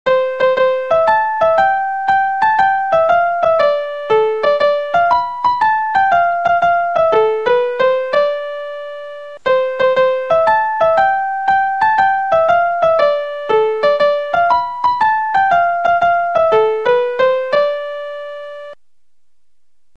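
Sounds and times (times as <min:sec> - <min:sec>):
music ringtone: 0:00.1 - 0:18.8.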